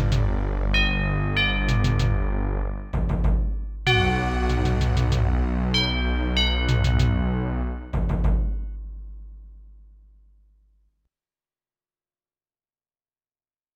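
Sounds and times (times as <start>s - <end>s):
ambient music: 0.0s - 8.9s.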